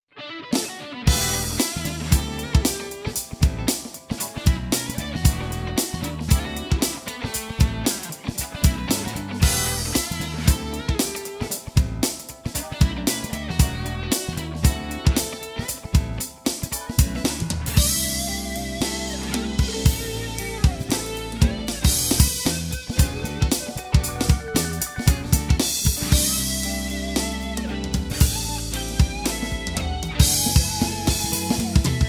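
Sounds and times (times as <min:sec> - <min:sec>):
funk music: 0:00.1 - 0:32.0.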